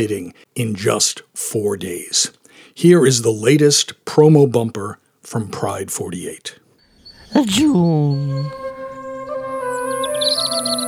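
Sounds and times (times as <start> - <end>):
speech: 0.0 - 6.6, 7.3 - 8.7, 10.2 - 10.8
birds chirping: 6.8 - 8.9.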